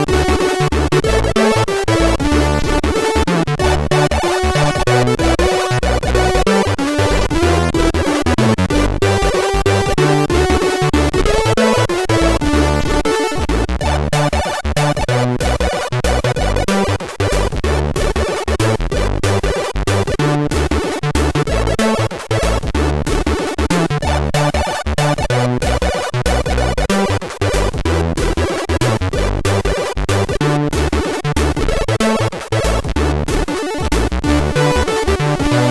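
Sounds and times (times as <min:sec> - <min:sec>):
Christmas chiptune music on MOS6581R3 SID chip: 0:00.0 - 0:35.7.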